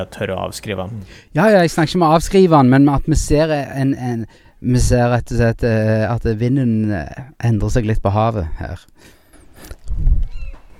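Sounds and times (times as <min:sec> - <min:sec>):
speech: 0:00.0 - 0:10.2
seagull crying: 0:10.3 - 0:10.7.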